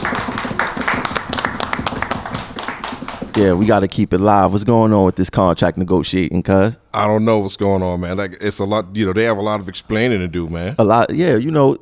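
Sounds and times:
live hand claps in the studio: 0.0s - 3.8s
speech: 3.4s - 11.8s.

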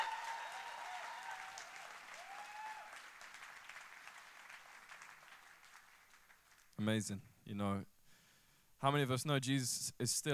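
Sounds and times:
audience applause: 0.0s - 6.7s
speech: 6.8s - 7.9s, 8.8s - 10.3s.

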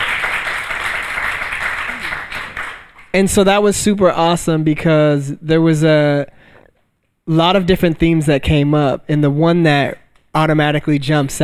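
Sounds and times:
audience applause: 0.0s - 3.1s
speech: 3.1s - 6.4s, 7.3s - 11.4s.

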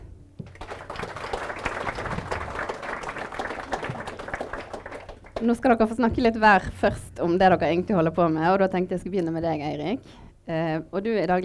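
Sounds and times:
audience applause: 0.5s - 5.5s
speech: 5.4s - 11.4s.

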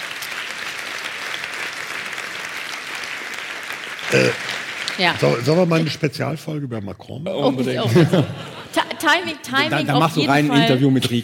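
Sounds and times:
crowd applause: 0.0s - 6.0s
speech: 4.1s - 4.4s, 5.0s - 11.2s
laughter: 7.4s - 11.2s.

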